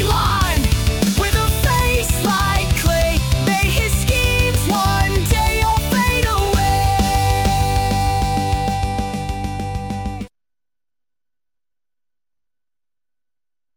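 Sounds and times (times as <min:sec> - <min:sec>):
punk rock music: 0:00.0 - 0:10.3.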